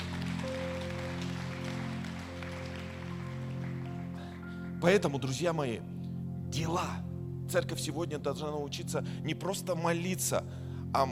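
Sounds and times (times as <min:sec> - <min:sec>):
audience applause: 0:00.0 - 0:04.3
speech: 0:04.8 - 0:11.1.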